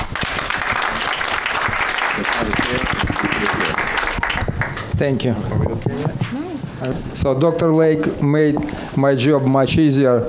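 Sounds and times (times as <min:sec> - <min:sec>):
audience applause welcoming a speaker at a talk: 0:00.0 - 0:04.9
speech: 0:05.0 - 0:10.2.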